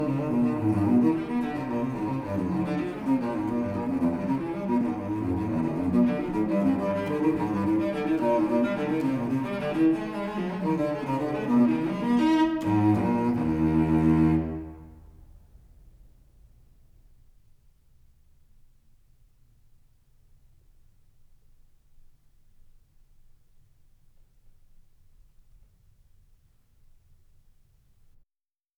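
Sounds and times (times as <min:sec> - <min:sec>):
solo cello piece in E flat major: 0:00.0 - 0:15.4.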